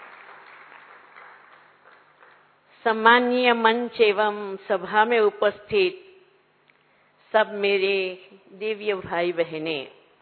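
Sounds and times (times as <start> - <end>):
applause welcoming honoured guests at a gathering: 0.0 - 2.7
speech: 2.8 - 6.0, 7.3 - 10.0.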